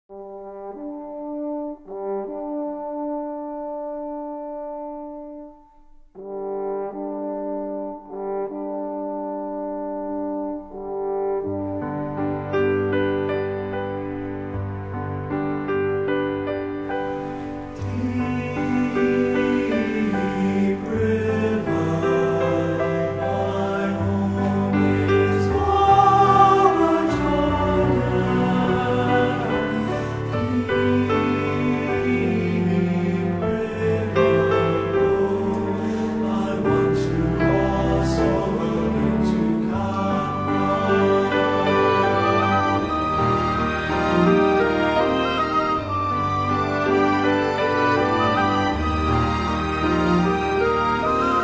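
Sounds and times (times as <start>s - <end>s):
chorale: 0.4s - 51.4s.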